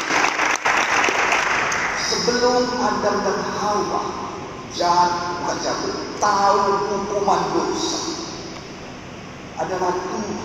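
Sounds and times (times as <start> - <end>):
applause: 0.0 - 2.0
speech: 2.3 - 8.1, 9.6 - 10.4.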